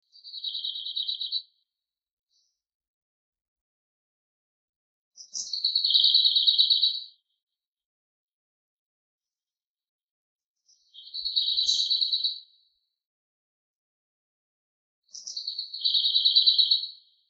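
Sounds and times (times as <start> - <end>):
bird: 0.0 - 2.6, 5.2 - 7.6, 10.6 - 13.0, 15.1 - 17.2.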